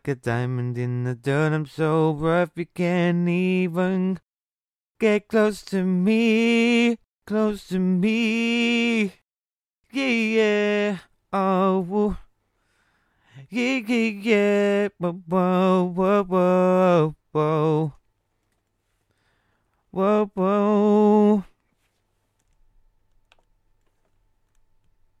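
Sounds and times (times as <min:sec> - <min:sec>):
RnB a cappella vocals at 130 BPM in E-flat minor: 0:00.0 - 0:04.2, 0:05.0 - 0:09.2, 0:09.9 - 0:12.3, 0:13.3 - 0:18.0, 0:19.9 - 0:21.6.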